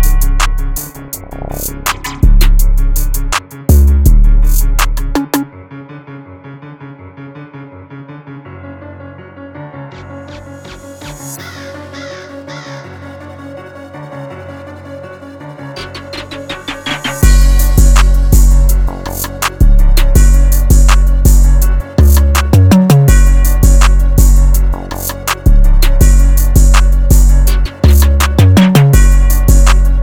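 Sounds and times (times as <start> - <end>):
164 bpm drum beats: 0.0 - 5.5, 16.8 - 30.0.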